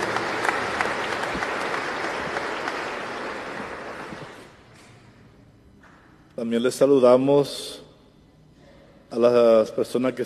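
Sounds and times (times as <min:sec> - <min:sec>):
audience applauding: 0:00.0 - 0:04.5
speech: 0:06.4 - 0:07.8, 0:09.1 - 0:10.2.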